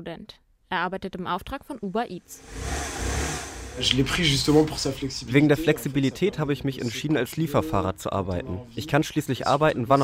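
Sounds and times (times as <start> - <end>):
speech: 0.0 - 3.2, 3.8 - 10.0
scooter engine driving: 2.4 - 4.2.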